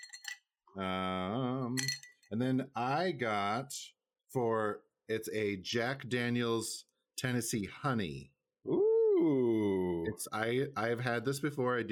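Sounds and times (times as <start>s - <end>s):
ice cubes clinking into a glass: 0.0s - 0.4s, 1.8s - 2.2s
speech: 0.7s - 11.9s.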